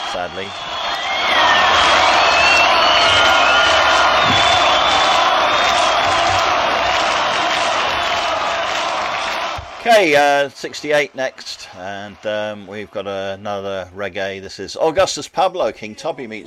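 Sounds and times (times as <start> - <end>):
high whistles: 0.0 - 6.3
audience applause at outdoor festival: 0.0 - 13.4
speech: 0.1 - 1.6, 9.8 - 16.4.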